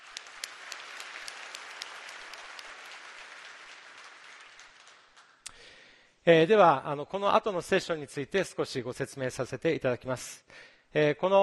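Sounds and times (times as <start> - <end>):
audience applause: 0.0 - 5.4
speech: 6.3 - 11.4.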